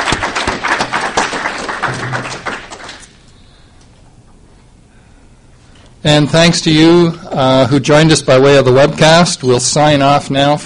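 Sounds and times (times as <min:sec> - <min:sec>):
audience applause: 0:00.0 - 0:03.1
speech: 0:06.0 - 0:10.6.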